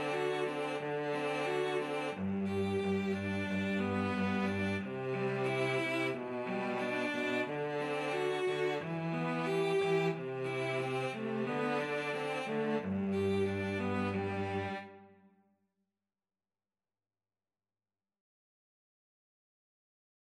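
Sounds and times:
cello duet: 0.0s - 15.2s.

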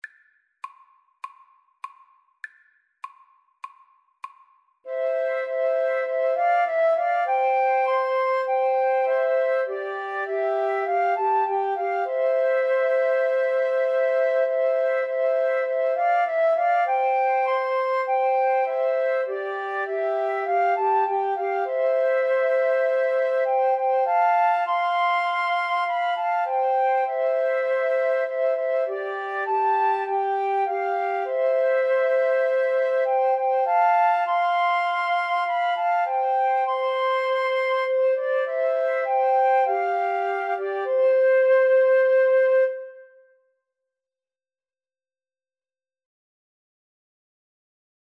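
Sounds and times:
flute trio playing: 4.9s - 43.2s.

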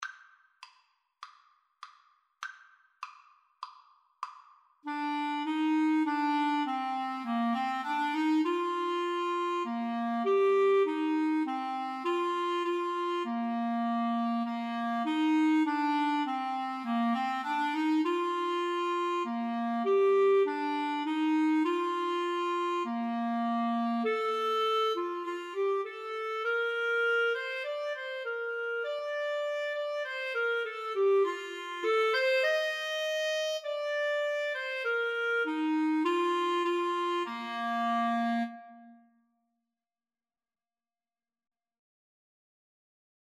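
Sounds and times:
clarinet duet: 4.9s - 39.2s.

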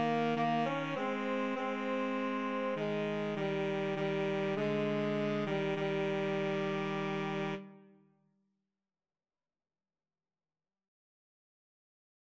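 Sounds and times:
woodwind trio with saxophone playing: 0.0s - 7.8s.

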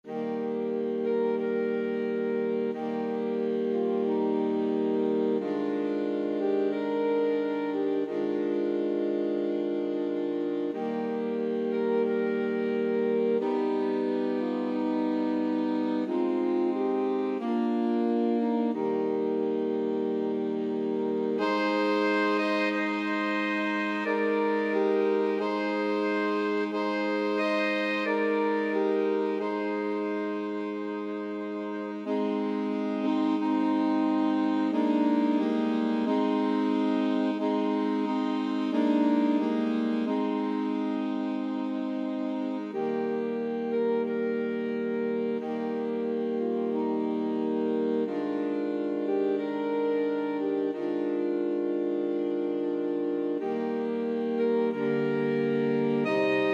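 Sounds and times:
saxophone quartet playing: 0.0s - 56.5s.

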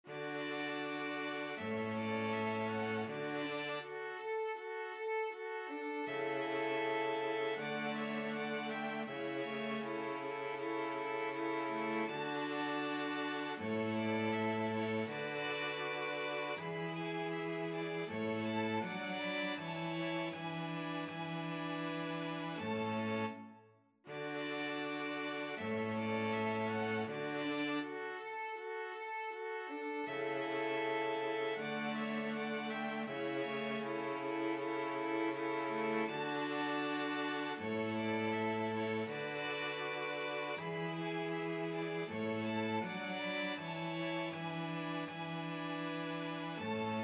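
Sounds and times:
string quartet: 0.0s - 47.0s.

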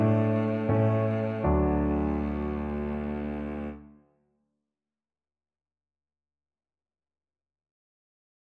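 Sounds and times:
piano trio: 0.0s - 3.8s.

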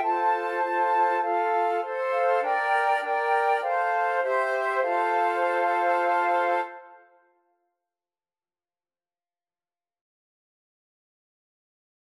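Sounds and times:
flute quartet: 0.0s - 7.1s.

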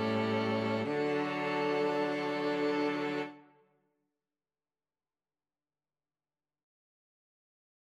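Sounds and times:
string quartet: 0.0s - 3.4s.

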